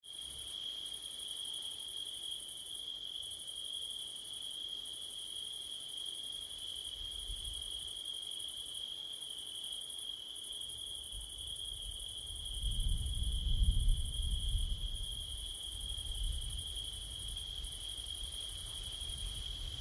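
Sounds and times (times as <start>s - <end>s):
crickets singing an even high trill on a September night: 0.1s - 19.8s.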